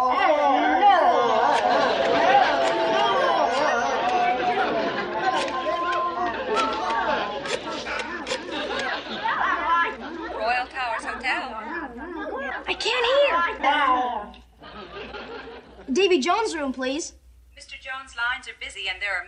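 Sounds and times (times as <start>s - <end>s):
people making crowd chatter noise: 0.0s - 15.8s
laughter: 0.6s - 15.9s
speech: 16.1s - 17.2s, 18.8s - 19.2s.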